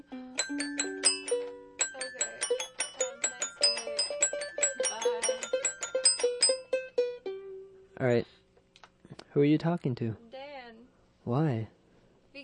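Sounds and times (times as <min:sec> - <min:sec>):
xylophone: 0:00.4 - 0:07.2
speech: 0:09.4 - 0:10.3, 0:11.2 - 0:11.8.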